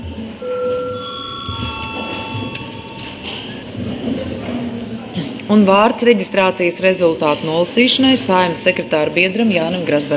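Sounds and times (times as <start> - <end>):
low murmur of chatter: 0.0 - 10.1
parliament session bell ringing: 0.4 - 3.7
speech: 5.5 - 10.1.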